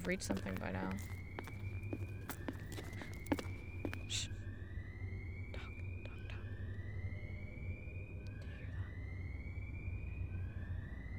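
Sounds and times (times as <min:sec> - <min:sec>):
speech: 0:00.0 - 0:01.2, 0:04.1 - 0:04.4
distant alarm siren: 0:00.0 - 0:11.1.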